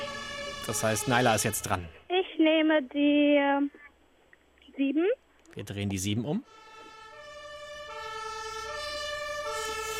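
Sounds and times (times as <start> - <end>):
fire engine siren wailing: 0.0 - 1.9, 6.4 - 9.9
low traffic rumble: 0.0 - 2.1, 5.6 - 9.9
speech: 0.7 - 3.8, 4.8 - 6.6.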